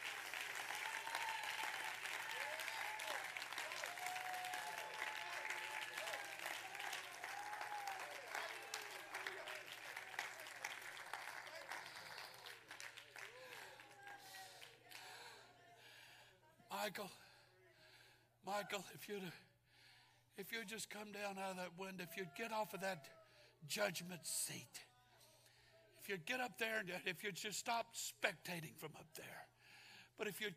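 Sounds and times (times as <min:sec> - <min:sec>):
audience clapping hands: 0:00.0 - 0:15.4
speech: 0:16.8 - 0:17.2, 0:18.4 - 0:19.5, 0:20.4 - 0:24.9, 0:26.1 - 0:29.6, 0:30.2 - 0:30.5.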